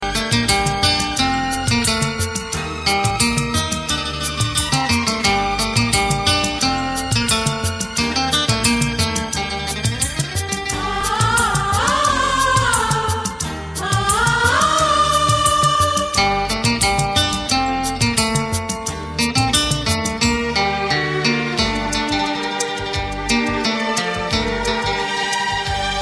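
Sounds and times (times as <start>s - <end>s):
romantic guitar music: 0.0s - 14.6s, 15.3s - 25.9s.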